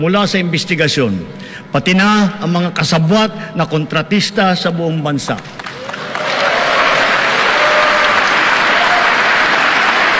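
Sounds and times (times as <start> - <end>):
speech: 0.0 - 6.1
audience applause: 5.6 - 10.1.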